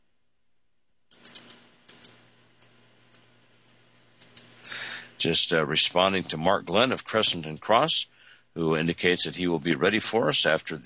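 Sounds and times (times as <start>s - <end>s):
soft steady hum: 0.0s - 10.8s
typing a message on a computer keyboard: 1.1s - 4.6s
speech: 5.2s - 10.8s.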